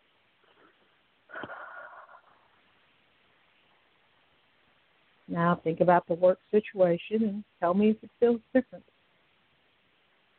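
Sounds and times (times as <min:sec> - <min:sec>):
slow deep breath drawn in: 0:00.5 - 0:02.6
speech: 0:05.3 - 0:08.9.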